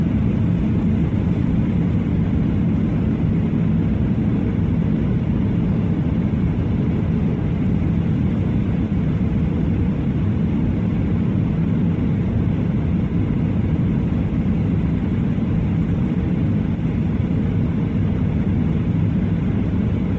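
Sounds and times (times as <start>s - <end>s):
airplane engine: 0.0s - 20.1s.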